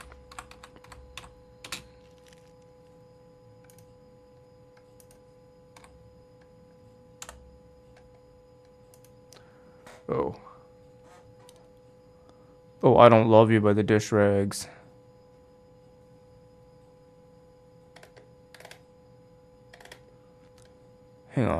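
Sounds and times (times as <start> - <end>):
quiet typing on a computer keyboard: 0.0 - 2.5, 7.2 - 8.2, 17.9 - 18.8, 19.7 - 20.0
faint steady hum: 0.0 - 21.5
speech: 10.1 - 10.5, 12.9 - 14.8.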